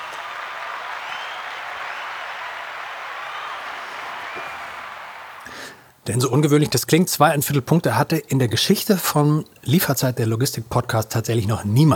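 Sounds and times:
group applause: 0.0s - 5.8s
speech: 6.1s - 11.9s.

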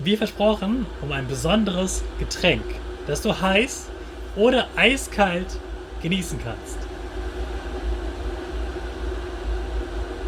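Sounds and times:
speech: 0.0s - 6.8s
water boiling in a kettle: 0.0s - 10.2s.

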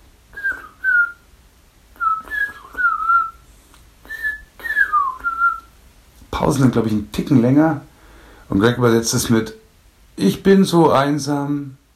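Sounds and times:
person whistling imitation of mistle thrush song: 0.3s - 1.2s, 2.0s - 3.4s, 4.0s - 5.7s
speech: 6.5s - 7.9s, 8.5s - 9.6s, 10.2s - 11.8s.

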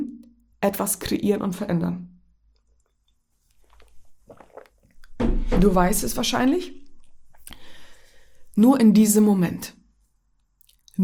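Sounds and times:
speech: 0.6s - 2.1s, 5.6s - 6.8s, 8.6s - 9.8s
person sipping and swallowing a drink: 3.4s - 5.2s, 6.1s - 8.6s, 10.6s - 11.0s.

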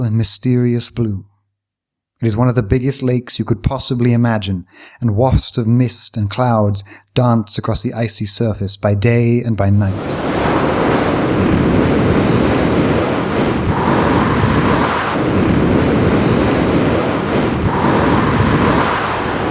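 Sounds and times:
speech: 0.0s - 1.3s, 2.2s - 10.4s
wind whistling across the plain: 9.9s - 19.5s.

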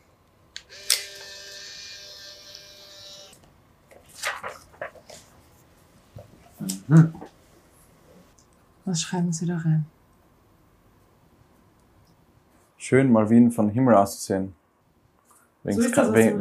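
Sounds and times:
camera shutter click: 0.7s - 1.6s
faint steady electronic whine: 0.7s - 3.4s
speech: 6.9s - 7.2s, 8.9s - 10.0s, 12.9s - 14.6s, 15.6s - 16.3s.

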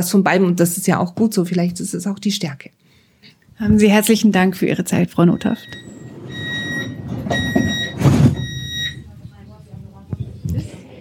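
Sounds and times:
speech: 0.0s - 2.9s, 3.6s - 5.9s
steady high-pitched subway door warning tone: 5.2s - 9.1s
subway train low rumbling hum: 5.4s - 10.0s
faint voices murmuring: 7.1s - 10.9s.

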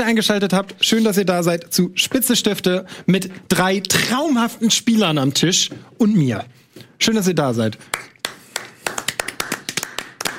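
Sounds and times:
speech: 0.0s - 8.1s
small group applauding: 7.9s - 10.3s.

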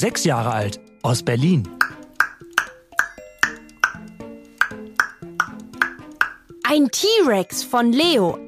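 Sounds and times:
speech: 0.0s - 1.8s, 6.7s - 8.4s
child imitating a great spotted woodpecker: 4.6s - 6.4s.

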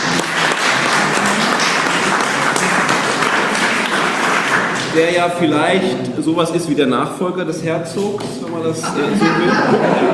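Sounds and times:
audience applause: 0.0s - 5.3s
speech: 5.0s - 10.1s
laughter: 8.7s - 10.1s.

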